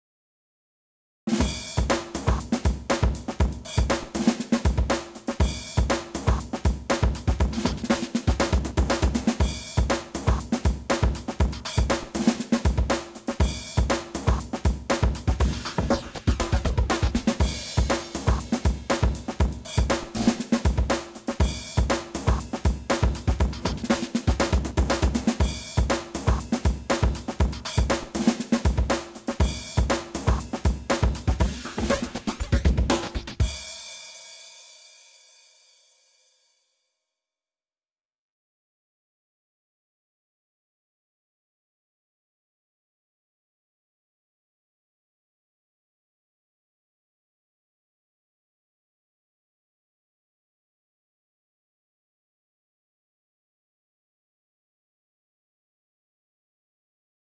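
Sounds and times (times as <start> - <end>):
round results percussion: 1.3 - 36.4.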